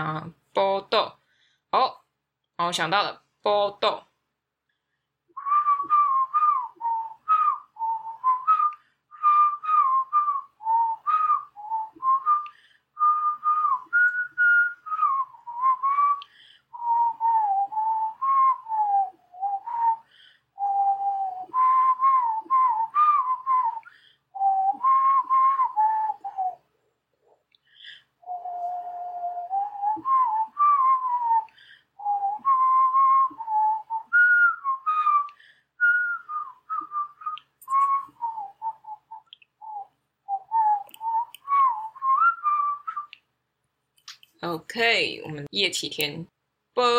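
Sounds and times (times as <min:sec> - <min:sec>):
speech: 0:00.0 - 0:01.9, 0:02.6 - 0:04.1, 0:44.8 - 0:46.9
person whistling a tune: 0:05.3 - 0:26.6, 0:27.8 - 0:43.2.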